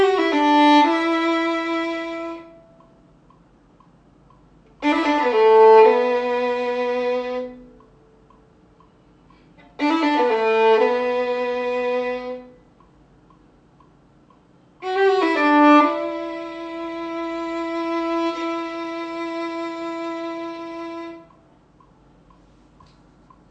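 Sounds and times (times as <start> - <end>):
violin part: 0.0 - 2.6, 4.8 - 7.7, 9.6 - 12.6, 14.8 - 21.3.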